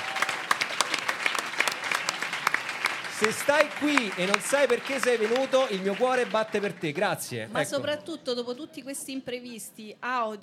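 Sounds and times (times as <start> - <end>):
audience applause: 0.0 - 7.4
speech: 3.2 - 10.4.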